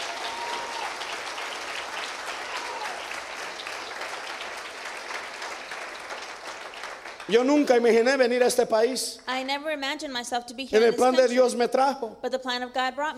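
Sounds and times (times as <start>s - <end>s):
audience applause: 0.0s - 8.4s
speech: 7.3s - 13.1s.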